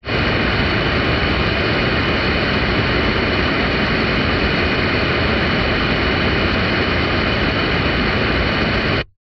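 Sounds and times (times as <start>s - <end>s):
car radio static burst from speaker: 0.0s - 9.1s.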